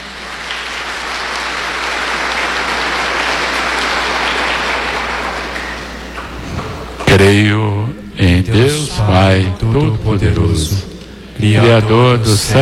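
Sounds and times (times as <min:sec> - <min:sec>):
audience applauding the children: 0:00.0 - 0:07.1
speech: 0:07.2 - 0:12.5.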